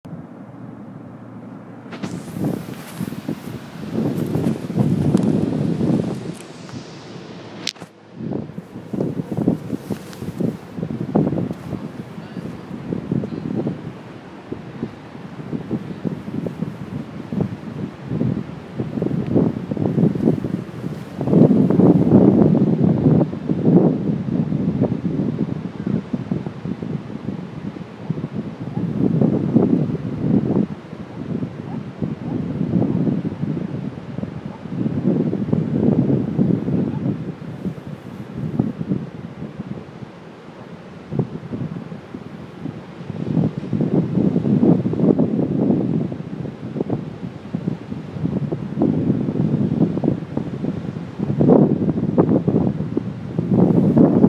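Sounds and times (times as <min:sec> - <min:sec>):
ocean waves on a beach: 0:00.1 - 0:54.2.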